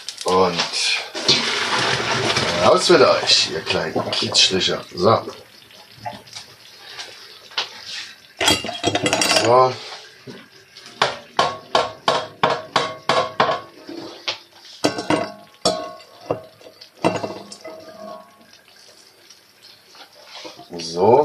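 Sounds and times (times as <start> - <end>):
running water: 0.0 - 21.2
speech: 0.3 - 1.2, 2.6 - 6.2, 9.0 - 10.4
pots and dishes clattering while cooking: 1.2 - 4.6, 8.4 - 18.6, 20.0 - 20.8.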